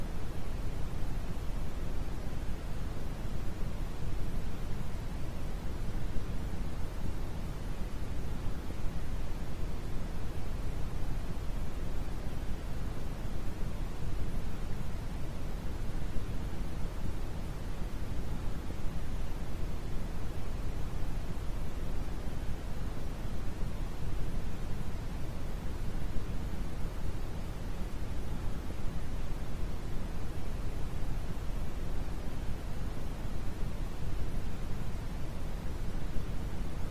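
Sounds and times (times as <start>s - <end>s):
quiet brown noise: 0.0s - 36.8s.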